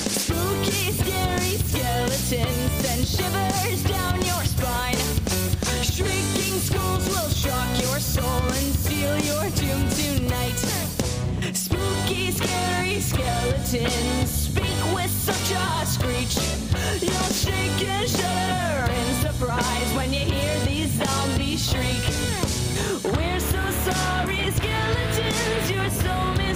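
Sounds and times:
Halloween song: 0.2s - 26.5s.

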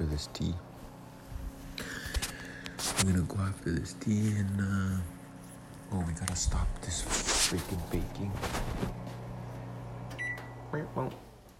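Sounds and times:
microwave oven humming: 0.0s - 11.5s
speech: 0.2s - 0.7s, 3.0s - 5.2s, 5.9s - 9.0s, 10.7s - 11.3s
microwave oven beeping: 9.0s - 11.2s.

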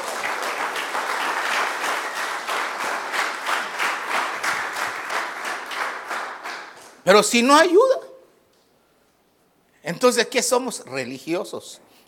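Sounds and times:
applause: 0.0s - 7.1s
speech: 7.1s - 8.0s, 9.9s - 12.0s.

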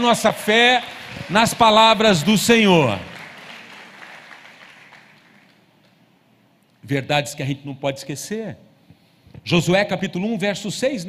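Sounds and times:
speech: 0.0s - 3.1s, 6.9s - 8.6s, 9.4s - 11.0s
audience applauding: 0.0s - 6.0s.

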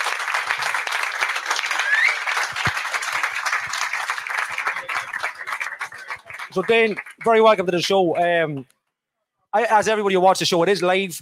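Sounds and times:
round of applause: 0.0s - 7.9s
speech: 6.6s - 8.8s, 9.5s - 11.2s.

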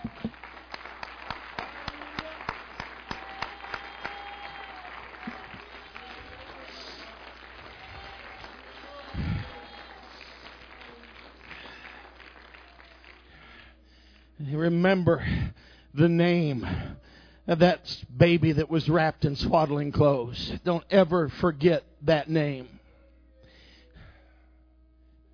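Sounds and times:
audience applause: 0.0s - 13.7s
speech: 14.8s - 22.8s.

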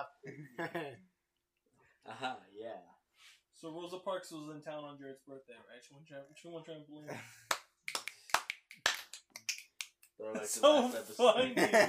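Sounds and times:
speech: 0.2s - 1.0s, 3.6s - 7.4s, 10.2s - 11.8s
scattered claps or snaps from a small audience: 7.4s - 10.2s
laughter: 10.4s - 11.8s.

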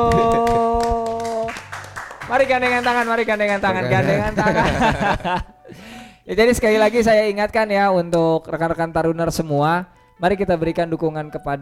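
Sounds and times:
audience clapping: 0.0s - 5.0s
speech: 2.3s - 11.6s
laughter: 3.6s - 5.5s.

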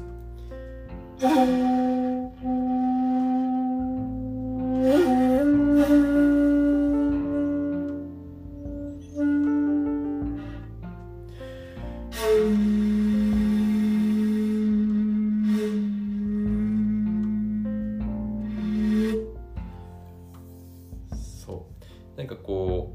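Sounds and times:
speech: 1.2s - 1.8s
rough-toned hocchiku bamboo flute being played: 1.2s - 10.8s, 12.1s - 19.8s.

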